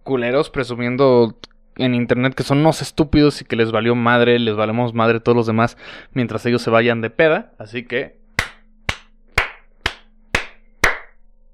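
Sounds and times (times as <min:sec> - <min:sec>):
speech: 0:00.1 - 0:08.2
applause: 0:08.4 - 0:11.1.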